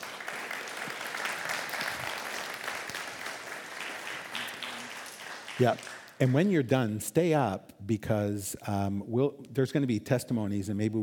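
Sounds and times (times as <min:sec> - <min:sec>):
audience applause welcoming a speaker invited up to share: 0:00.0 - 0:06.4
speech: 0:05.6 - 0:11.0.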